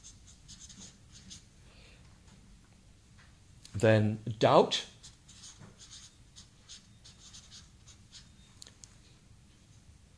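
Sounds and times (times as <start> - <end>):
pen scratching on paper: 0.0 - 1.5, 5.0 - 8.3
speech: 3.8 - 4.9.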